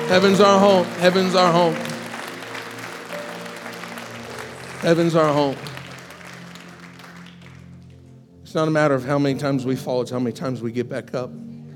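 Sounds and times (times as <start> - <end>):
audience cheering: 0.0 - 7.7
speech: 0.1 - 1.9, 4.8 - 5.7, 8.5 - 11.5.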